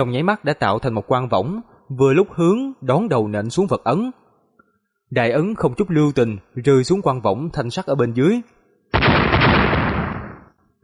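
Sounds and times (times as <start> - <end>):
speech: 0.0 - 4.2, 5.1 - 9.0
explosions: 9.0 - 10.6.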